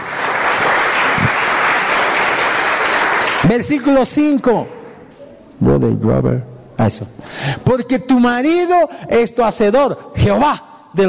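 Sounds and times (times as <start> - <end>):
audience applause: 0.0 - 3.8
speech: 3.5 - 4.8, 5.6 - 11.0.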